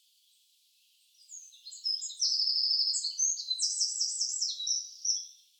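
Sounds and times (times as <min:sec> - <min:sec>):
Eurasian wren song: 0:01.2 - 0:05.4.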